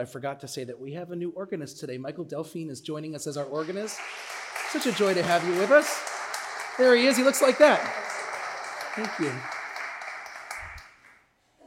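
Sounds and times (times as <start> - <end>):
speech: 0.0 - 6.1, 6.8 - 8.2, 9.0 - 9.5
audience clapping: 3.4 - 11.3.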